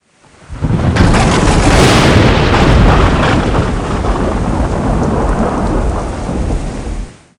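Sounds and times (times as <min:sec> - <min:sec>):
thunder: 0:00.3 - 0:07.2.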